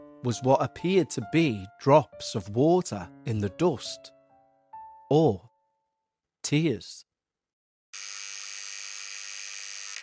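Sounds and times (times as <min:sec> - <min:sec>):
speech: 0:00.2 - 0:04.2, 0:05.1 - 0:05.5, 0:06.4 - 0:07.1, 0:07.9 - 0:08.2
door buzzer going off: 0:08.0 - 0:10.0.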